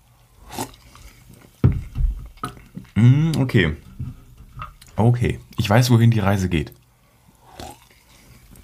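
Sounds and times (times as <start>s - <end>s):
person slurping a Chiemseer base drink: 0.4s - 1.3s, 7.3s - 8.5s
speech: 3.0s - 3.8s, 5.0s - 6.8s
gulping swallows of a Chiemseer base drink: 7.4s - 8.5s.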